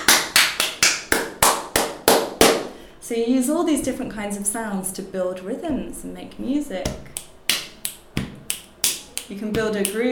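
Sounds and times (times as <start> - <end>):
hand clapping demonstration: 0.0 - 2.7, 6.9 - 10.1
speech: 3.1 - 7.2, 9.3 - 10.1.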